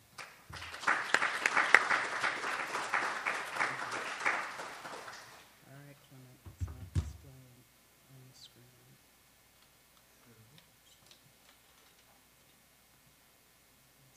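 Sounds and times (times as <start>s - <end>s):
audience applause welcoming a speaker at a talk: 0.2s - 5.5s
man speaking: 5.6s - 9.0s.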